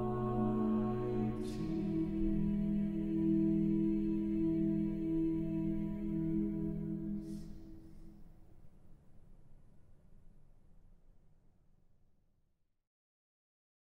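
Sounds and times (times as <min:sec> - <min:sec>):
slow song: 0:00.0 - 0:08.1.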